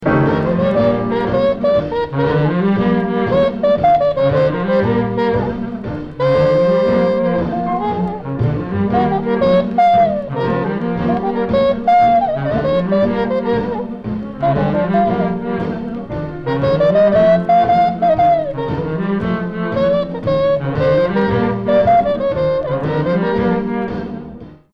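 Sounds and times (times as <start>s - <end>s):
trumpet: 0.0s - 24.7s.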